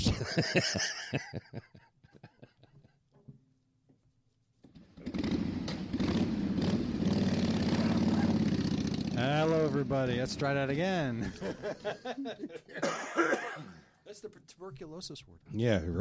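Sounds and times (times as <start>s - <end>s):
laughter: 0.0s - 2.9s, 11.0s - 13.6s
speech: 0.1s - 1.7s, 9.2s - 16.0s
motorcycles passing on the road: 4.8s - 12.1s.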